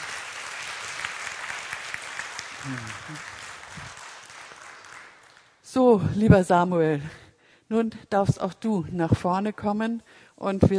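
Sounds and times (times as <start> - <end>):
audience applause: 0.0 - 5.6
speech: 2.6 - 3.9, 5.7 - 10.7.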